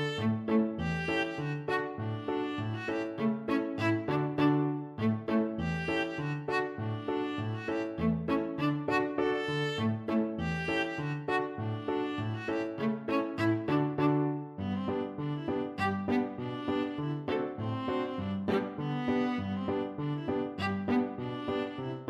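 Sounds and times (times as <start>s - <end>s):
viola playing a polka: 0.0s - 22.0s.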